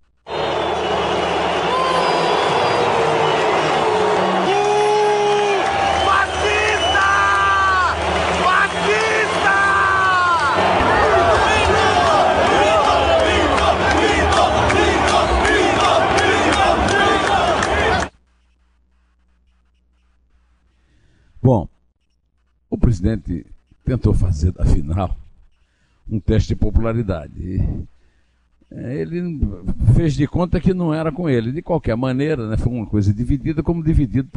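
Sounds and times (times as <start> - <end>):
whistles: 0.3 - 3.7, 5.7 - 7.5
large stadium crowd booing: 0.3 - 18.1
speech: 23.1 - 25.2, 26.1 - 27.9, 28.7 - 34.3.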